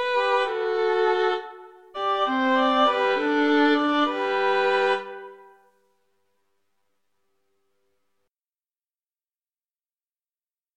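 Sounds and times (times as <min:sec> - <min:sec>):
violins playing a pastorale: 0:00.0 - 0:05.5.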